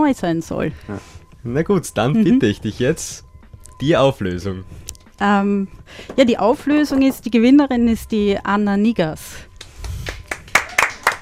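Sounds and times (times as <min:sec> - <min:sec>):
speech: 0:00.0 - 0:09.5
audience applause: 0:10.0 - 0:11.2.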